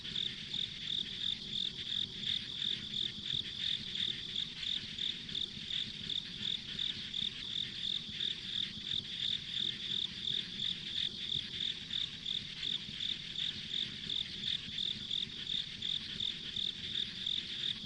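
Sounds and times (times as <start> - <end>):
insect chirps: 0.0 - 17.8.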